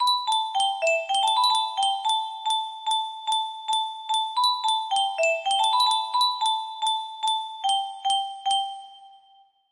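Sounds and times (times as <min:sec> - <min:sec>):
melody idea: 0:00.0 - 0:09.5.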